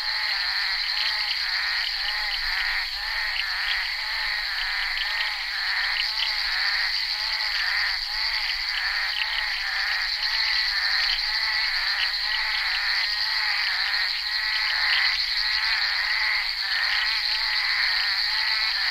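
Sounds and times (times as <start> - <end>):
bullfrog chorus croaking: 0.0 - 18.9.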